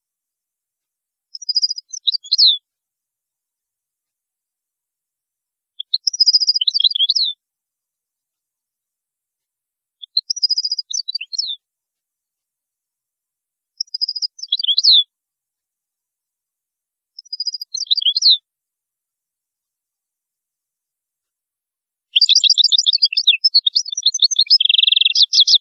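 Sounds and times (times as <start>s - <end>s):
European goldfinch song twittering: 1.4s - 2.6s, 5.8s - 7.3s, 10.0s - 11.6s, 13.8s - 15.0s, 17.2s - 18.4s, 22.2s - 25.5s.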